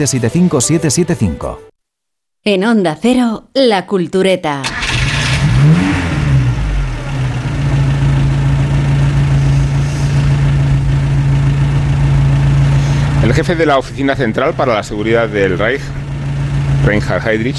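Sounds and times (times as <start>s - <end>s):
speech: 0.0s - 1.7s, 2.4s - 4.8s, 13.3s - 16.1s, 16.8s - 17.5s
Mercedes 770 driving through a forest outside Berlin: 4.7s - 17.5s.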